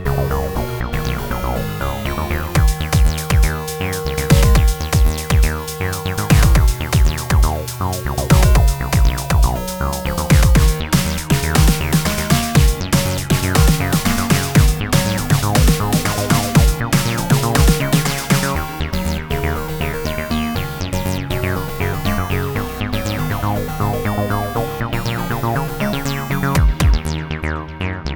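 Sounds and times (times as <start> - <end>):
racing techno music: 0.0 - 27.8.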